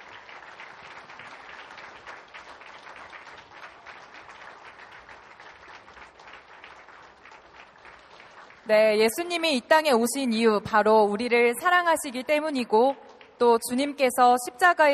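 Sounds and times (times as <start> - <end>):
audience applause: 0.0 - 8.7
speech: 8.7 - 14.9.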